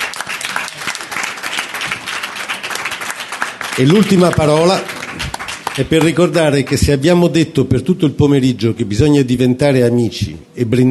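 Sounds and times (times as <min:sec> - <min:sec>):
audience applause for a simultaneous interpreter at a talk: 0:00.0 - 0:06.8
speech: 0:03.8 - 0:04.9, 0:05.8 - 0:10.9.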